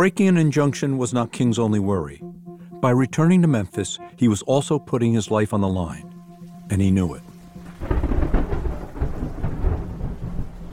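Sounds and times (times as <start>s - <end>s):
speech: 0.0s - 6.1s, 6.7s - 8.1s
rain hissing: 5.3s - 10.7s
rolling thunder during a thunderstorm: 7.7s - 10.7s.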